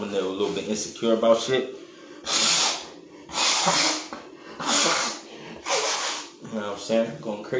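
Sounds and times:
speech: 0:00.1 - 0:02.4, 0:03.6 - 0:03.9, 0:06.9 - 0:07.5
person blowing nose: 0:02.2 - 0:06.4.

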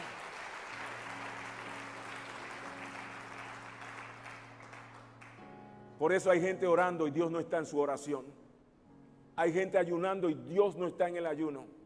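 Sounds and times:
audience clapping: 0:00.0 - 0:05.5
sustained low keyboard chord: 0:00.0 - 0:09.7
speech: 0:06.0 - 0:08.4, 0:09.4 - 0:11.8.

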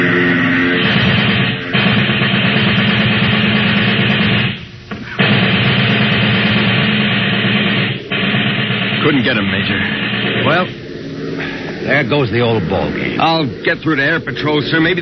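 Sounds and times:
plane engine roar: 0:00.0 - 0:04.4, 0:05.4 - 0:15.0
submachine gun fire at approaching plane: 0:00.6 - 0:10.8
speech: 0:09.2 - 0:10.8, 0:11.9 - 0:15.0.

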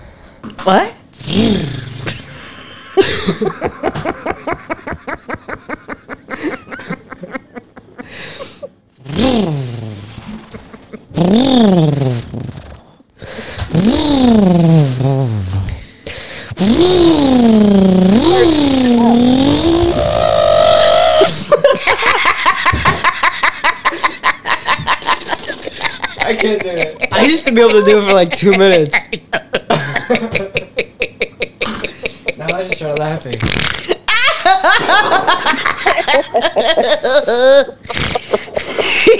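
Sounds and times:
speech: 0:00.6 - 0:01.8, 0:03.2 - 0:04.8, 0:27.6 - 0:29.3
person vocally imitating a chainsaw starting: 0:01.2 - 0:02.4, 0:09.0 - 0:12.9, 0:13.7 - 0:15.8, 0:16.6 - 0:21.5
laughter: 0:02.2 - 0:08.8, 0:10.2 - 0:11.2, 0:18.2 - 0:39.1.

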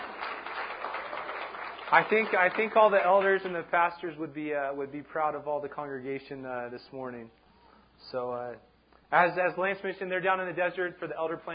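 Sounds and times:
audience applause: 0:00.0 - 0:03.7
speech: 0:01.9 - 0:07.4, 0:08.0 - 0:11.5.

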